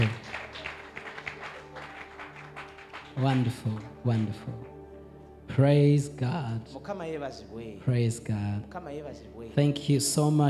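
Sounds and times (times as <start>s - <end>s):
audience clapping hands: 0.0s - 4.8s
speech: 3.2s - 4.7s, 5.6s - 10.4s.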